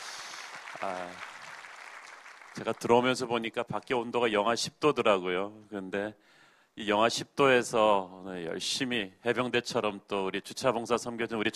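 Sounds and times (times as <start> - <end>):
audience applauding: 0.0 - 3.3
speech: 0.8 - 1.3, 2.6 - 11.5.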